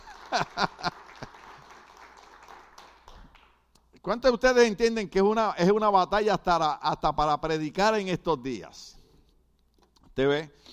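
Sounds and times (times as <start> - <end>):
laughter: 0.0 - 1.5
audience applause: 0.0 - 3.5
speech: 0.3 - 0.9, 4.0 - 9.0, 10.2 - 10.7.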